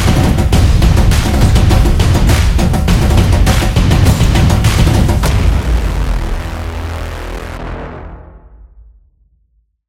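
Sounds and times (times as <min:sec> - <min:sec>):
soccer game trailer drums: 0:00.0 - 0:07.7.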